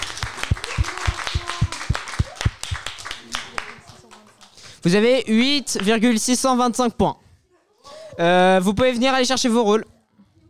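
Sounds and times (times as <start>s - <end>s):
audience applauding the second-place team: 0.0s - 4.8s
scattered voices and cheers: 0.5s - 2.5s
speech: 4.8s - 7.2s, 8.2s - 9.9s.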